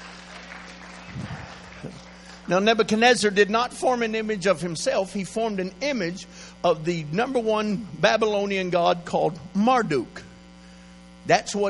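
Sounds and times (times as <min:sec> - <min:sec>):
audience clapping: 0:00.0 - 0:02.8
speech: 0:01.8 - 0:10.2, 0:11.2 - 0:11.6.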